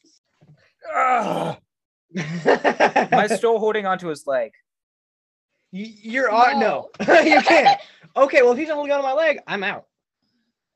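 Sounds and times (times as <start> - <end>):
person vocally imitating a character screaming: 0.8 - 1.6
speech: 0.9 - 4.7, 5.7 - 9.9.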